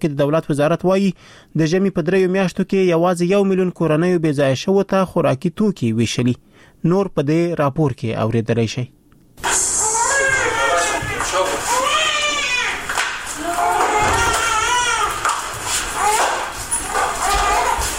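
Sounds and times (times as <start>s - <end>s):
speech: 0.0s - 9.6s
malnourished children crying in a ward at Herat regional hospital: 9.4s - 17.9s.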